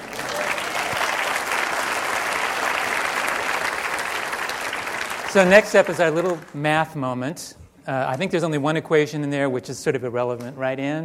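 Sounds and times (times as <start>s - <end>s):
audience clapping: 0.0s - 6.8s
speech: 5.3s - 11.0s.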